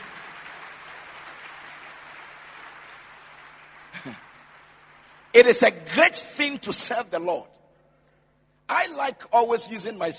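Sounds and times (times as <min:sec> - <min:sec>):
audience clapping: 0:00.0 - 0:06.0
speech: 0:04.0 - 0:04.3, 0:05.3 - 0:07.6, 0:08.7 - 0:10.1.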